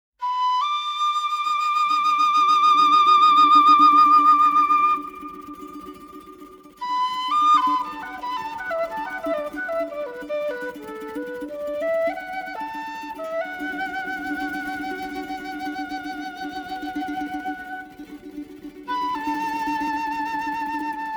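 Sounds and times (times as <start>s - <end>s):
quena flute: 0.2s - 21.1s.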